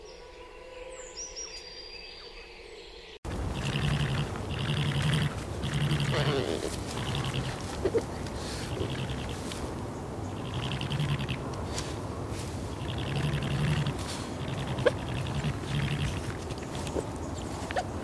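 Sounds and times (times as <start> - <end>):
European badger vocalizing: 3.3 - 18.0.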